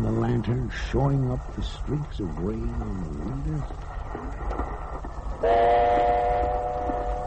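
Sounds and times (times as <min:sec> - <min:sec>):
train rattling along the track: 0:00.0 - 0:07.2
speech: 0:00.2 - 0:06.4
train horn blaring: 0:05.4 - 0:07.2.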